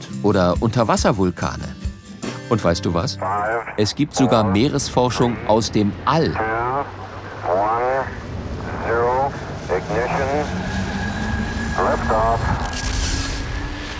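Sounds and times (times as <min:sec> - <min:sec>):
speech: 0:00.2 - 0:01.8, 0:02.5 - 0:06.6
rocket launch: 0:08.1 - 0:13.9.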